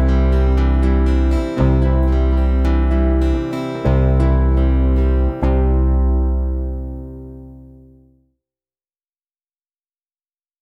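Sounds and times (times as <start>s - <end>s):
instrumental music: 0.0s - 8.2s.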